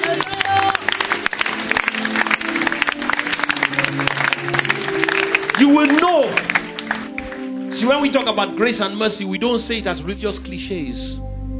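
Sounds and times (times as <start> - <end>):
audience clapping: 0.0 - 8.5
speech: 7.8 - 11.3.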